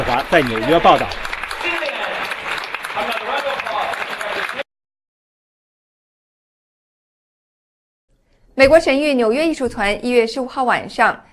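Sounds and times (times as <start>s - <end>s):
prolonged theater audience applause: 0.0s - 4.7s
speech: 0.1s - 1.2s, 8.6s - 11.3s.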